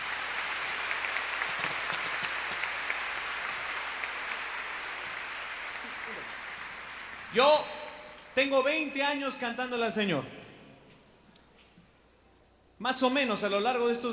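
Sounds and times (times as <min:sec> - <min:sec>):
applause: 0:00.0 - 0:08.2
speech: 0:07.3 - 0:07.7, 0:08.4 - 0:10.4, 0:12.8 - 0:14.1.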